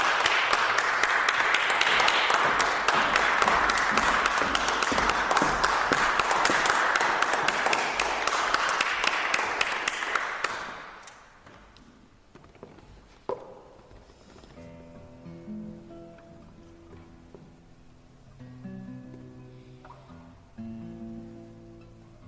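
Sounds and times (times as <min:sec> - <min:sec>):
concert applause welcoming a classical guitarist in San Francisco: 0:00.0 - 0:11.1.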